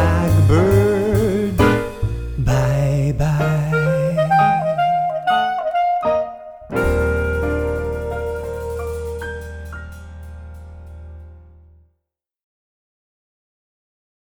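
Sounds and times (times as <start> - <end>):
swing band combo playing: 0.0 - 11.3.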